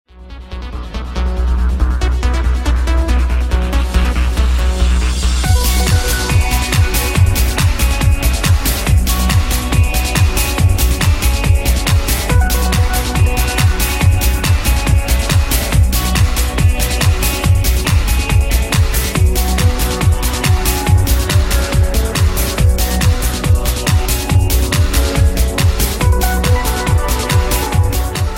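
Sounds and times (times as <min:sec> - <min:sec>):
guitar: 0:00.6 - 0:28.3.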